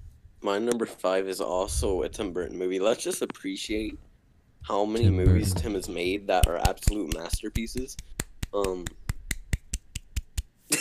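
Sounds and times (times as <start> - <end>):
speech: 0.4 - 9.0
hand claps: 6.3 - 10.6.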